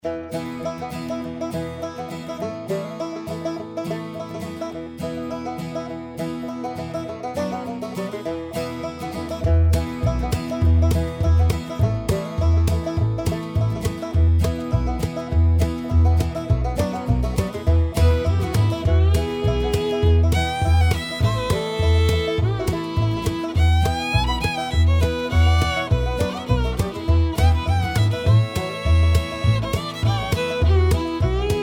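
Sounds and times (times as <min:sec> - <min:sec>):
bluegrass banjo: 0:00.0 - 0:31.6
bluegrass violins: 0:09.7 - 0:31.6.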